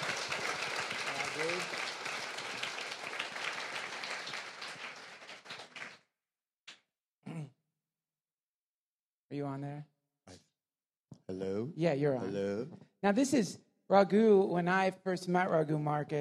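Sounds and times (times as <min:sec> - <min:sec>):
audience applauding: 0:00.0 - 0:06.0
speech: 0:09.3 - 0:10.4, 0:11.3 - 0:16.2.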